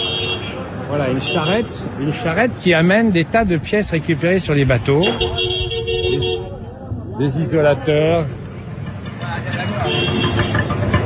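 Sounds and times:
car horns: 0.0 - 1.8, 4.9 - 6.6, 9.6 - 11.0
engines: 0.0 - 11.0
tuk-tuks: 0.0 - 11.0
speech: 0.9 - 5.5, 7.2 - 8.4.

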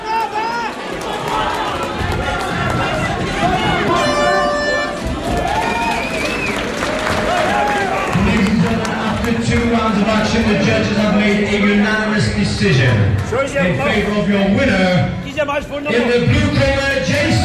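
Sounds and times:
audience cheering and clapping at a fight: 0.0 - 11.8, 16.6 - 17.4
speech: 10.4 - 17.4.

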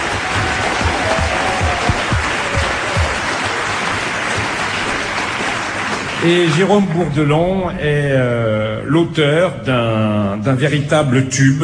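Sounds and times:
audience applause: 0.0 - 7.4
speech: 6.2 - 11.6.

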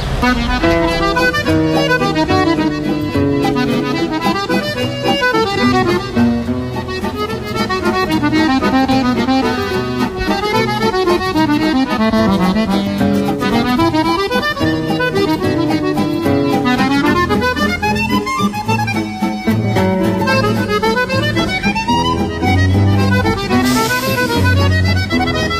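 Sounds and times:
waltz music: 0.0 - 25.5.

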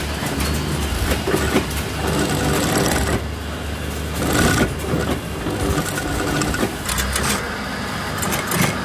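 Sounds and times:
sewing machine stitching velcro fastening onto trousers in a clothing workshop: 0.2 - 3.3, 4.1 - 7.4, 8.2 - 8.8.

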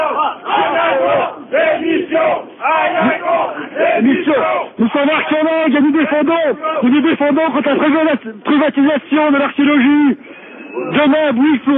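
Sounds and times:
protest crowd chanting at a public service demonstration in Besançon: 0.0 - 6.9
speech: 4.0 - 10.2, 10.8 - 11.7.

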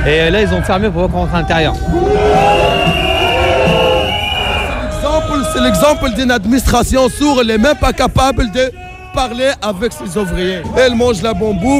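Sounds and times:
speech: 0.0 - 3.8, 5.2 - 11.7
protest crowd roar of voices: 1.7 - 5.8
protest crowd blowing whistles: 2.2 - 4.8.

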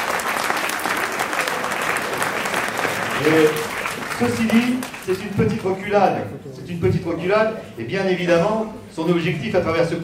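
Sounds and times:
audience applause: 0.0 - 5.2
speech: 3.2 - 10.0.

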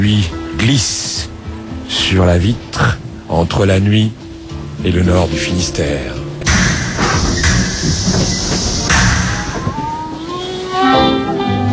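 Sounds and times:
speech: 0.0 - 1.3, 1.9 - 4.2, 4.8 - 6.2
SNCF night train departing: 6.4 - 11.6.

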